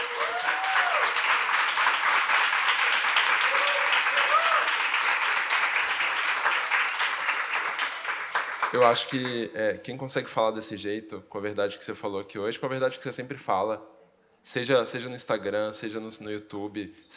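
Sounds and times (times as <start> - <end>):
audience applause: 0.0 - 9.4
speech: 8.8 - 17.1.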